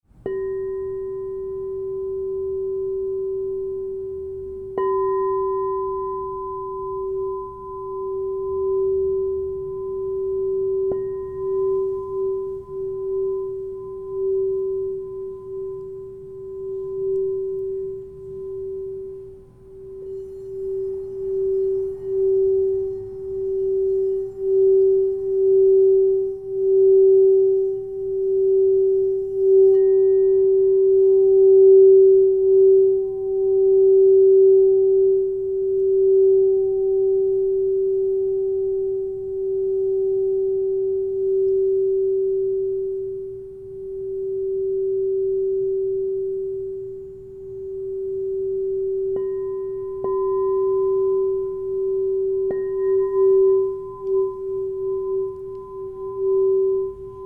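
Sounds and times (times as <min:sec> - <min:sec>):
crystal singing bowls ringing: 0:00.2 - 0:57.2.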